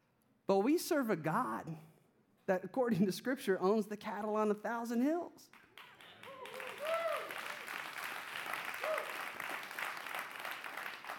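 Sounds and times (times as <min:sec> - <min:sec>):
speech: 0:00.5 - 0:01.9, 0:02.5 - 0:05.6
crowd applause: 0:05.8 - 0:11.1.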